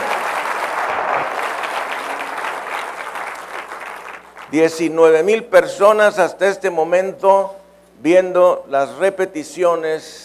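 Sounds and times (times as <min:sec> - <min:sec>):
audience applause: 0:00.0 - 0:04.6
speech: 0:04.5 - 0:10.2.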